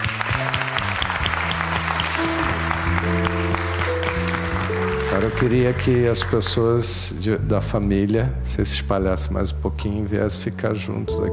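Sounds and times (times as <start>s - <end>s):
audience applause: 0.0s - 6.6s
sustained low organ or keyboard chords: 0.4s - 11.3s
speech: 5.2s - 11.3s.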